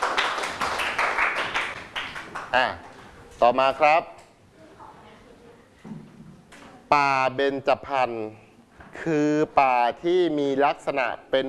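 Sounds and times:
students clapping for a classmate: 0.0s - 2.6s
speech: 2.5s - 4.1s, 6.9s - 11.4s.

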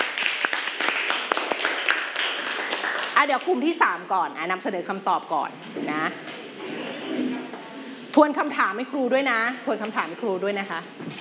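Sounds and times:
classroom students clapping: 0.0s - 3.6s
speech: 3.2s - 6.4s, 8.2s - 11.1s.

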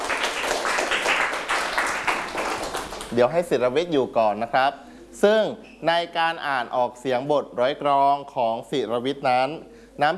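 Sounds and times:
classmates clapping for a classmate: 0.0s - 3.4s
speech: 3.1s - 10.1s.

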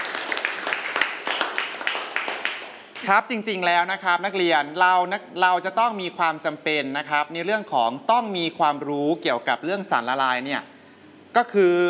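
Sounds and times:
students clapping: 0.0s - 3.1s
speech: 3.0s - 10.7s, 11.3s - 11.8s.

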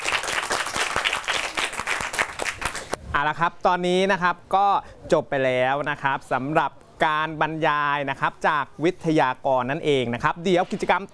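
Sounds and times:
audience applause after presenting souvenirs: 0.0s - 3.0s
speech: 3.2s - 11.1s.

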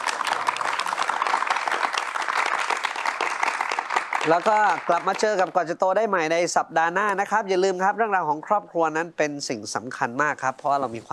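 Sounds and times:
audience applause: 0.0s - 5.6s
speech: 4.2s - 11.1s.

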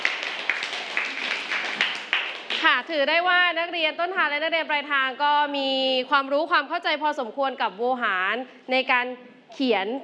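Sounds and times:
classroom applause for a group of students: 0.0s - 2.8s
speech: 2.7s - 10.0s.

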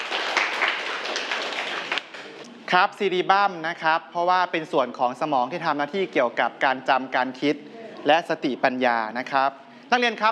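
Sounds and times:
students in a classroom clapping for a classmate: 0.0s - 2.4s
speech: 2.7s - 10.3s.

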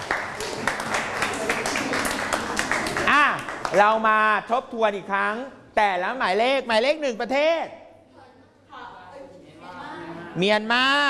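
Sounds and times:
group clapping: 0.0s - 4.2s
speech: 3.7s - 7.8s, 10.4s - 11.0s.

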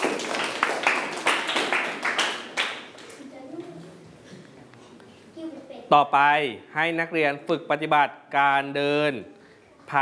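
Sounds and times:
students clapping hands for a classmate: 0.0s - 3.2s
speech: 5.9s - 9.9s.

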